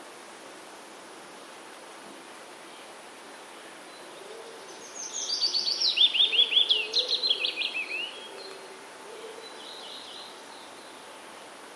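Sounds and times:
willow warbler song: 0:03.9 - 0:11.2.

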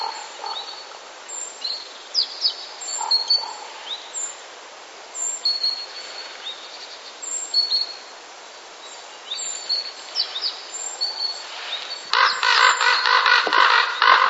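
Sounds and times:
common raven courtship calls: 0:00.0 - 0:01.0, 0:02.9 - 0:03.8, 0:12.1 - 0:14.2.

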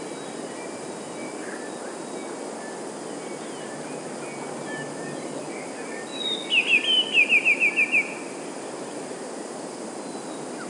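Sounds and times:
Eurasian blue tit singing: 0:03.3 - 0:08.2.

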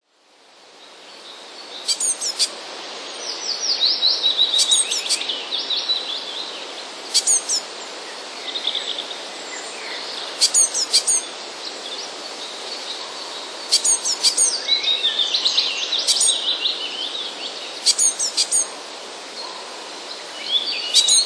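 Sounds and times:
constant hiss: 0:00.0 - 0:21.2
Eurasian blue tit song: 0:01.9 - 0:02.5, 0:07.1 - 0:07.6, 0:10.4 - 0:11.2, 0:13.7 - 0:14.5, 0:17.8 - 0:18.7, 0:20.8 - 0:21.2.

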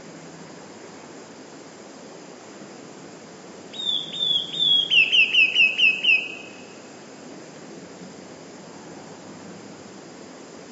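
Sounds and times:
low hiss: 0:00.0 - 0:10.7
Eurasian blue tit song: 0:03.7 - 0:06.8.

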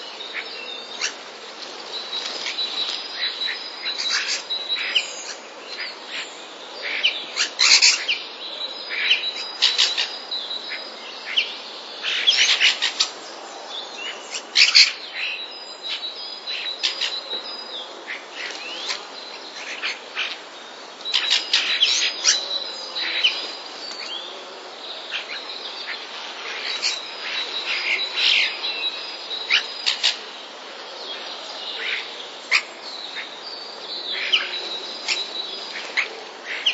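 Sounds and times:
starlings calling: 0:00.0 - 0:36.7.

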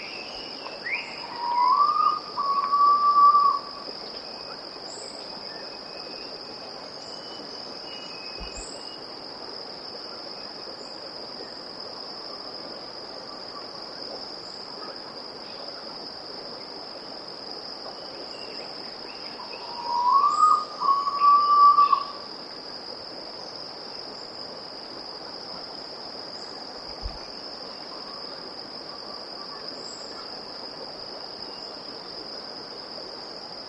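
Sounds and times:
Erythropitta erythrogaster bird calling: 0:00.9 - 0:03.7, 0:19.4 - 0:22.2.

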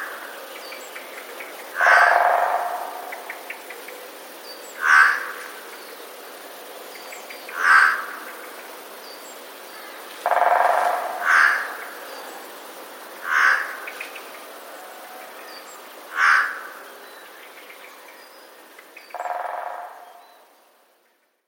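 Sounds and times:
jay calling: 0:01.7 - 0:03.6, 0:04.8 - 0:05.4, 0:10.3 - 0:11.9, 0:13.2 - 0:14.0, 0:19.1 - 0:20.2.

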